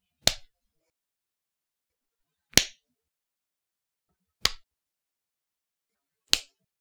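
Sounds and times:
slaps: 0:00.2 - 0:00.5, 0:02.6 - 0:02.8, 0:04.4 - 0:04.7, 0:06.3 - 0:06.6.

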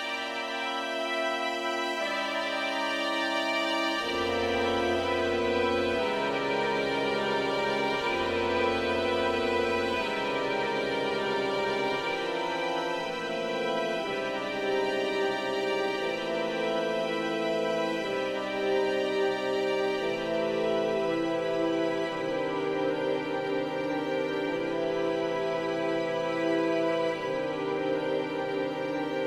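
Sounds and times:
developing harmony: 0:00.1 - 0:29.2.

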